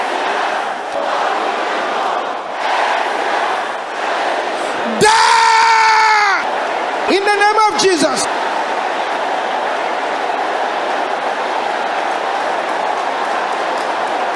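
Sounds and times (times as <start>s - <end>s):
large audience shouting prayer loudly together: 0.0s - 14.3s
single voice giving a sustained, strained high shout: 4.8s - 6.4s.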